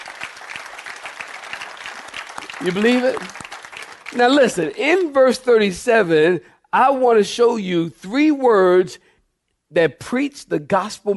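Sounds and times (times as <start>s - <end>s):
audience clapping hands: 0.0s - 5.1s
speech: 2.6s - 3.4s, 4.1s - 9.1s, 9.7s - 11.1s.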